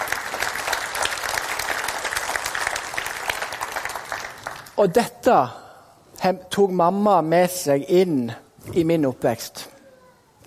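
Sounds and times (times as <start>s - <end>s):
audience clapping: 0.0s - 4.8s
speech: 4.8s - 5.6s, 6.2s - 9.7s.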